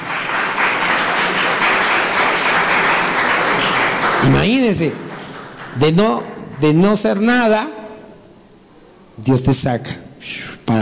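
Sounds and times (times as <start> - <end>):
audience applause: 0.0 - 6.0
speech: 4.2 - 5.1, 5.8 - 7.8, 9.2 - 10.8.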